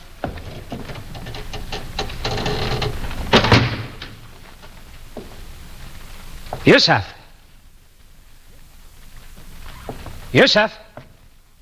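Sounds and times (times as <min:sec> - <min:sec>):
heavy door shutting: 0:00.0 - 0:04.4
speech: 0:06.6 - 0:07.2, 0:10.3 - 0:10.9.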